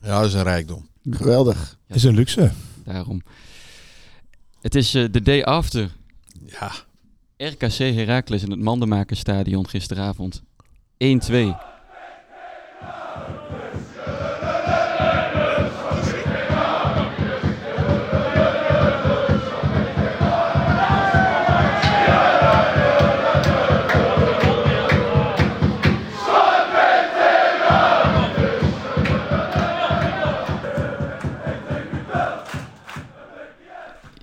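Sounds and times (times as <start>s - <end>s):
speech: 0.0s - 3.6s, 4.6s - 11.7s
rhythmic clapping or stamping: 11.2s - 34.1s
football crowd chanting and singing: 11.2s - 34.2s.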